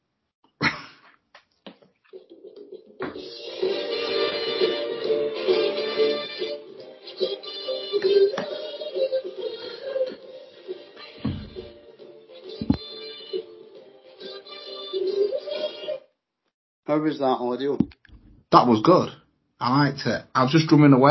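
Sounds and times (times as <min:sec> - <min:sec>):
1968 soul song recording playing: 0:03.0 - 0:16.0
speech: 0:16.9 - 0:21.0.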